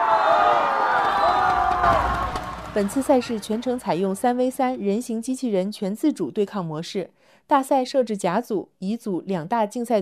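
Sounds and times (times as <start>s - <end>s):
crowd cheering at a humanoid robot football match: 0.0s - 4.8s
speech: 2.8s - 10.0s.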